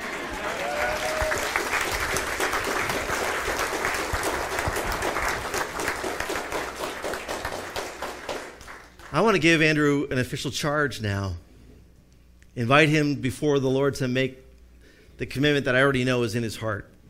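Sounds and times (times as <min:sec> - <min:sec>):
audience applause: 0:00.0 - 0:09.3
speech: 0:09.2 - 0:11.5, 0:12.6 - 0:14.4, 0:15.2 - 0:16.9.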